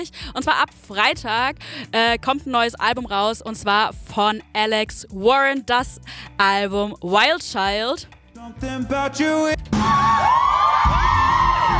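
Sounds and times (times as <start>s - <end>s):
speech: 0.0s - 11.0s
crowd cheering: 9.7s - 11.7s.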